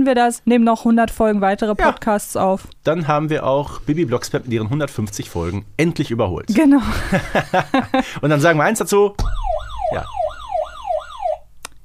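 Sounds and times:
speech: 0.0 - 10.2
laughter: 6.8 - 8.2
wailing alarm siren: 9.2 - 11.5.

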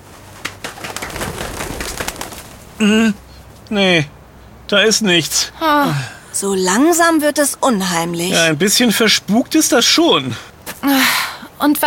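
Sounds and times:
rustling wing flutters: 0.2 - 2.9
speech: 2.8 - 11.8.

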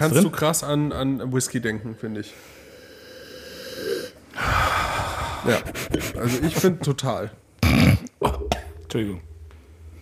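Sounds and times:
speech: 0.0 - 2.6, 5.4 - 8.0, 8.9 - 9.3
person sniffing a dark beer: 2.4 - 6.8.

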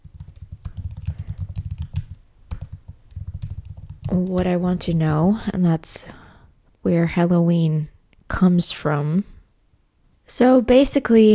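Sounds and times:
rapid typing on a computer keyboard: 0.0 - 4.9
speech: 4.1 - 6.2, 6.8 - 9.3, 10.3 - 11.3.

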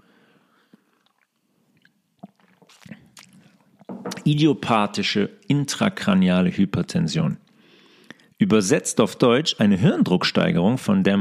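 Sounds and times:
person taking a quick drink, sipping and swallowing: 0.7 - 4.3
speech: 4.2 - 7.4, 8.4 - 11.1.

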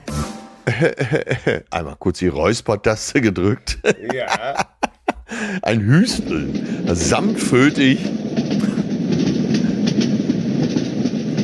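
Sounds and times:
laughter: 0.7 - 2.0, 3.5 - 7.1
speech: 0.7 - 4.7, 5.3 - 8.7
ICE high-speed train riding on rails: 3.9 - 11.4.

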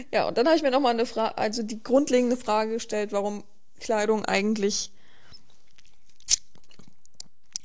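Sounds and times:
speech: 0.1 - 5.0
crunchy chewing of food by someone trying to swallow: 5.6 - 7.6.

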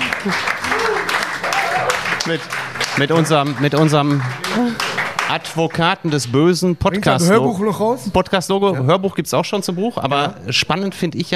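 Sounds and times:
applause: 0.0 - 6.4
speech: 0.2 - 1.0, 2.2 - 11.3.

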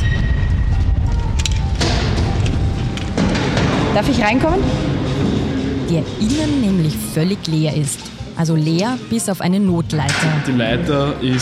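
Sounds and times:
heavy metal door to turbine tower opening: 0.0 - 7.7
constant loud low rumble: 0.0 - 9.0
speech: 4.0 - 4.9, 5.9 - 11.4.

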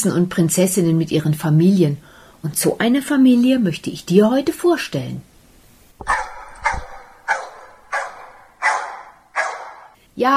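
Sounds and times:
speech: 0.0 - 5.3, 10.2 - 10.3
two dogs barking: 6.0 - 10.0.

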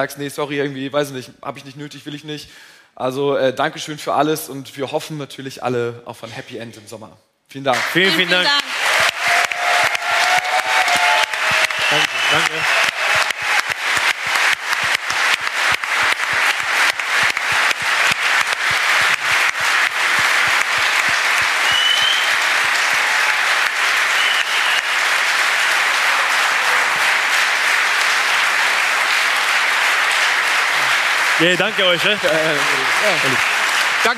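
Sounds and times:
speech: 0.0 - 8.7, 11.9 - 12.8, 31.4 - 34.1
live audience applauding: 7.7 - 34.1.

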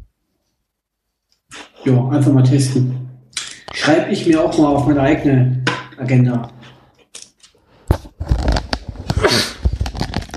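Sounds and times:
person sneezing: 1.5 - 1.8, 9.2 - 9.6
speech: 1.8 - 3.0, 3.8 - 6.6.

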